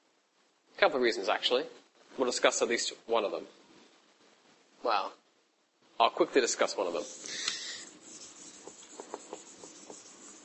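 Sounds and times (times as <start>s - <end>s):
soft steady hiss: 0.0s - 10.4s
speech: 0.8s - 3.6s, 4.8s - 5.2s, 6.0s - 7.6s
writing being erased from a board: 6.9s - 10.4s.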